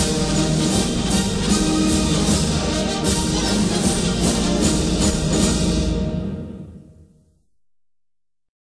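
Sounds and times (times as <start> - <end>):
German military presentation march: 0.0 - 6.2.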